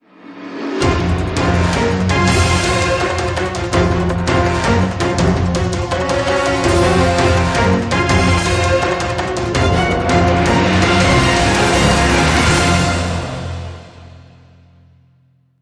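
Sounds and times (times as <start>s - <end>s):
light percussion: 0.2s - 14.2s.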